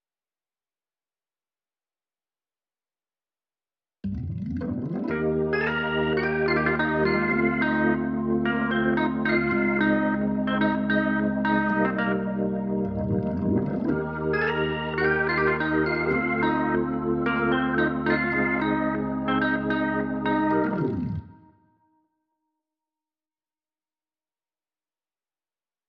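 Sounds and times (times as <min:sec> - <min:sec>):
keyboard playing: 0:04.1 - 0:21.6.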